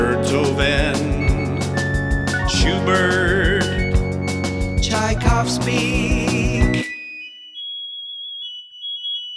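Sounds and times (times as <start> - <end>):
repetitive bird call: 0.0 - 9.3.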